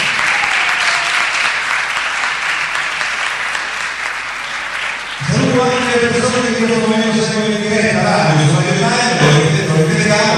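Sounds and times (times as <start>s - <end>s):
audience applause: 0.0s - 7.6s
speech: 6.0s - 9.2s.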